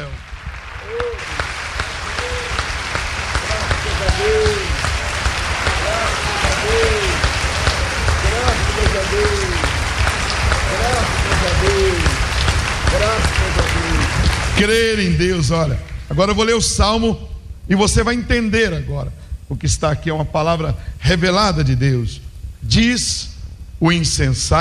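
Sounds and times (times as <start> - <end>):
audience applauding: 0.0 - 16.0
speech: 14.6 - 24.5.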